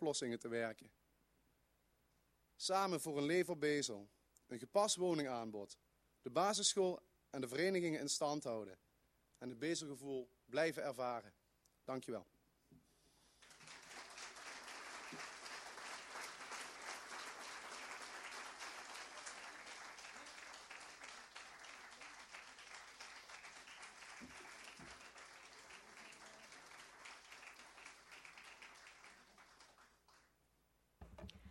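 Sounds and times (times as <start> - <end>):
speech: 0.0 - 1.0, 2.6 - 12.8
warm applause after a speech: 13.4 - 30.4.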